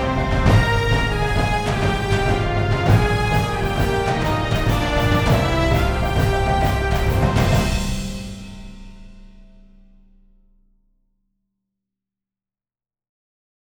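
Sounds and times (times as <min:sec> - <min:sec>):
main theme music: 0:00.0 - 0:09.5.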